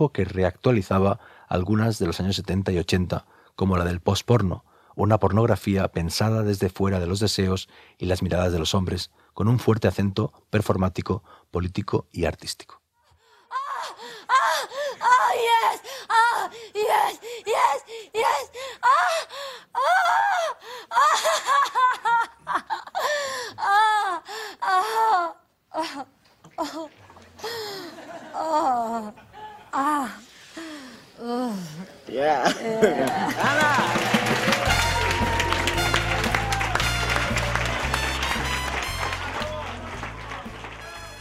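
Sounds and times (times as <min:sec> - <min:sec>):
speech: 0:00.0 - 0:12.8, 0:24.1 - 0:34.2
woman performing exaggerated fake orgasm moans and breathy gasps: 0:13.2 - 0:31.9
laughter: 0:27.0 - 0:29.9, 0:32.0 - 0:41.1
audience applause and cheering: 0:33.0 - 0:41.1
music: 0:33.9 - 0:41.1.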